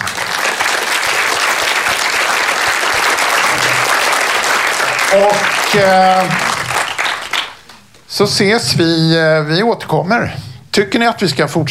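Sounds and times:
crowd applauding: 0.0s - 7.8s
speech: 5.1s - 6.5s, 8.1s - 11.6s.

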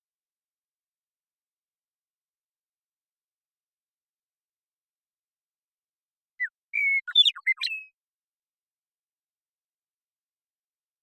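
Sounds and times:
western meadowlark song: 6.2s - 8.0s.

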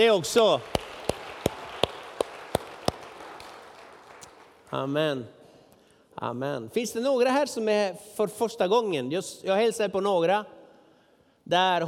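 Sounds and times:
speech: 0.0s - 0.9s, 4.7s - 5.4s, 6.2s - 10.6s, 11.5s - 11.8s
audience applauding: 0.0s - 4.8s
sharp rhythmic claps: 0.0s - 4.8s.

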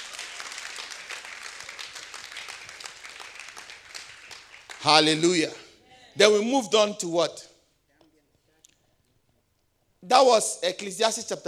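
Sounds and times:
crowd applause: 0.0s - 6.4s
speech: 4.8s - 5.6s, 6.2s - 7.5s, 10.1s - 11.4s.

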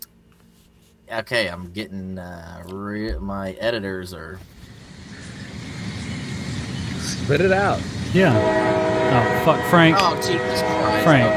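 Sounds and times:
speech: 1.1s - 4.6s, 7.2s - 11.3s
passing train: 4.5s - 11.3s.

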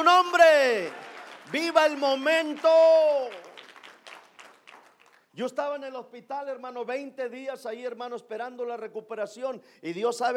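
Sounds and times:
speech: 0.0s - 3.4s, 5.4s - 10.3s
audience applauding: 0.7s - 5.3s.

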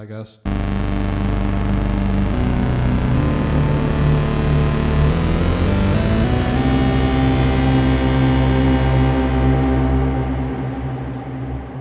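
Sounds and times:
Sub 37 synthesizer fat square preset: 0.5s - 11.7s.

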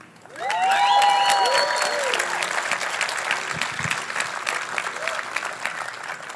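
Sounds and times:
whoops and shouts from the crowd: 0.3s - 2.5s
audience applause: 0.3s - 6.3s.

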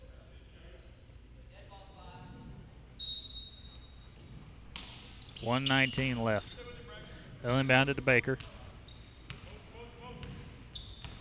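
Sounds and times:
speech: 5.4s - 6.6s, 7.4s - 8.6s
basketball being dribbled in a men's college game: 9.3s - 9.6s, 10.2s - 11.1s.

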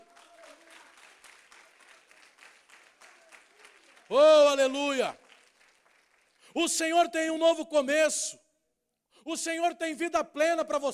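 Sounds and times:
audience applauding: 0.0s - 6.4s
speech: 4.1s - 5.2s, 6.6s - 8.4s, 9.2s - 10.9s.

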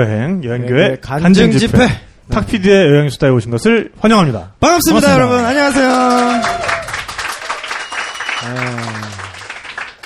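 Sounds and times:
speech: 0.0s - 6.7s
crowd clapping: 5.3s - 10.0s.

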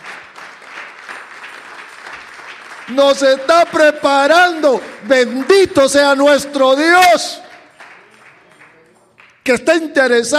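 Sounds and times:
audience applause: 0.0s - 6.2s, 7.6s - 9.4s
speech: 2.9s - 7.4s, 9.5s - 10.3s.

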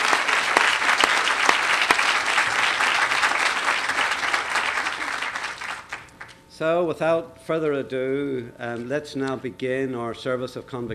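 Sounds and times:
audience applause: 0.0s - 6.2s
speech: 6.6s - 10.9s.

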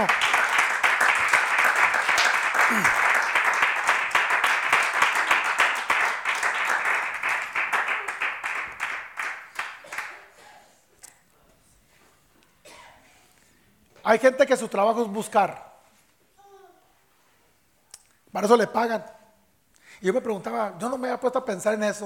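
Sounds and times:
audience applauding: 0.0s - 10.4s
speech: 14.1s - 15.7s, 18.4s - 19.2s, 20.0s - 22.0s.

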